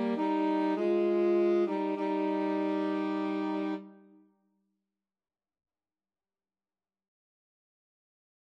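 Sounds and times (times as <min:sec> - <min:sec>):
saxophone in a woodwind trio: 0:00.0 - 0:04.2
woodwind trio: 0:00.0 - 0:04.2.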